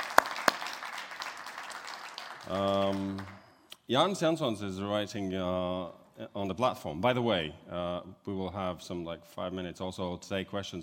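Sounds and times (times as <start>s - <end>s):
applause for panelists: 0.0s - 3.6s
speech: 2.5s - 10.8s.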